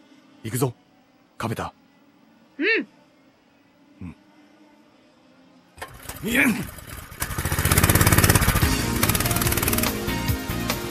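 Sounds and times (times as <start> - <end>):
speech: 0.4 - 0.8, 1.4 - 1.8, 2.6 - 3.0, 4.0 - 4.2, 6.2 - 6.8
small high-revving engine running: 5.8 - 10.1.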